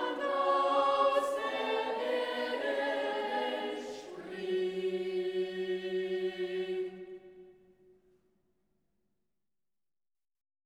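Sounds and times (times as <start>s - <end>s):
choir singing an arrangement: 0.0s - 7.9s.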